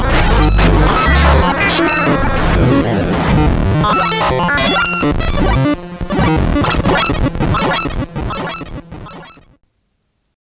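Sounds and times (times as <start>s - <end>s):
1-bit groove music: 0.0s - 9.6s.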